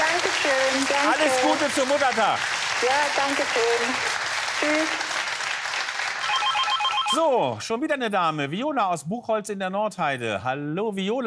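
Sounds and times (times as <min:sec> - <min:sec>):
studio applause for a radio quiz caller: 0:00.0 - 0:07.3
speech: 0:00.8 - 0:05.1, 0:07.1 - 0:11.2.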